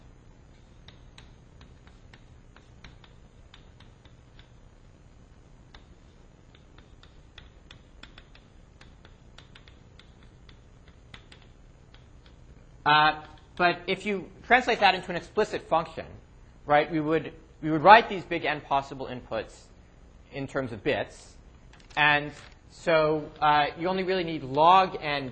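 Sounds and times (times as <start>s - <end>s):
notes being written down: 0.5s - 4.6s, 6.5s - 12.4s
speech: 12.8s - 19.7s, 20.3s - 21.4s, 22.0s - 25.3s.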